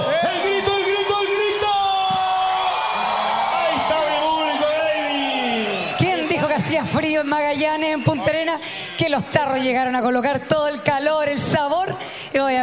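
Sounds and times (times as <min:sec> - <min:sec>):
high whoops, yells and shouts: 0:00.0 - 0:06.8
crowd applause: 0:00.0 - 0:06.9
speech: 0:07.2 - 0:12.6.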